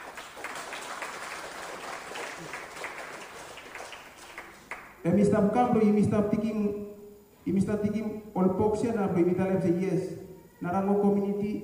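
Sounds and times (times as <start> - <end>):
crowd clapping: 0.0 - 5.0
speech: 5.0 - 11.6.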